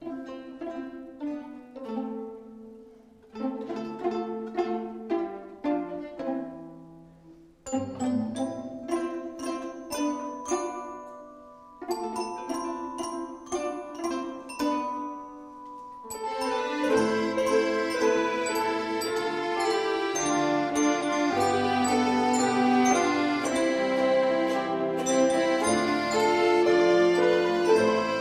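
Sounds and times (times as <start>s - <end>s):
instrumental music: 0.0s - 28.2s.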